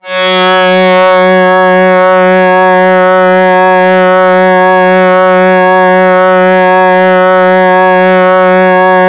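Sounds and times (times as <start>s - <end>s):
Yamaha YX81Z synth double bass note F sharp 3: 0.0s - 9.0s.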